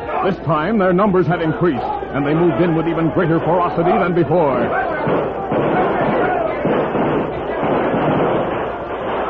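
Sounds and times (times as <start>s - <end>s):
speech: 0.2s - 5.4s
radio drama gunfire effect for a battle against attacking Cheyennes: 3.4s - 9.2s.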